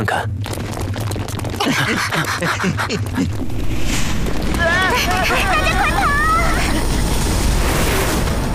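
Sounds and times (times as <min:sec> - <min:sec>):
rumbling tremor, ground shaking: 0:00.3 - 0:08.5
laughter: 0:01.6 - 0:03.4, 0:04.6 - 0:07.2
speech: 0:01.7 - 0:06.9.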